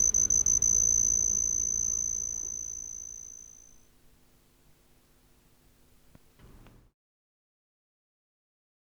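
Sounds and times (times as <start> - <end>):
Homoeoxipha lycoides cricket giving a thin high trill: 0.0 - 3.9.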